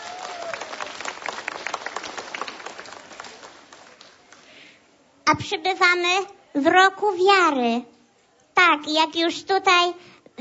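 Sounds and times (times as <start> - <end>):
crowd applauding warmly: 0.0 - 4.6
speech: 5.3 - 7.9, 8.6 - 10.3.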